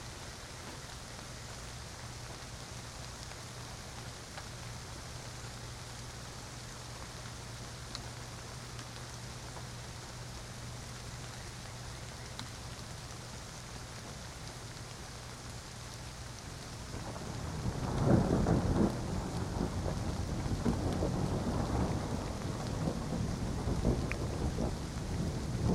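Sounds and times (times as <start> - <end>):
thunderstorm: 16.8 - 25.7.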